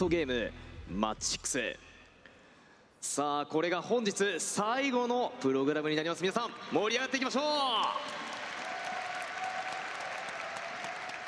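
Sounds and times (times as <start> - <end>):
speech: 0.0 - 1.9, 3.0 - 8.3
audience applause at an Apex Legends esports tournament: 7.8 - 11.2.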